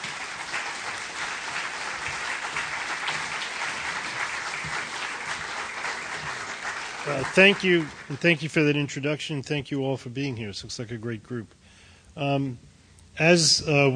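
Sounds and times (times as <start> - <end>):
audience applause at the Free Library welcoming a speaker: 0.0 - 8.8
speech: 7.1 - 11.6, 12.2 - 13.9.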